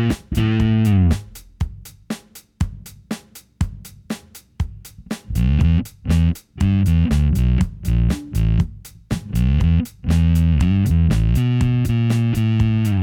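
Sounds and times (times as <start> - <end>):
bass guitar played finger style through tube overdrive and amp simulator: 0.0 - 1.4, 5.3 - 13.0
drum loop: 0.0 - 13.0.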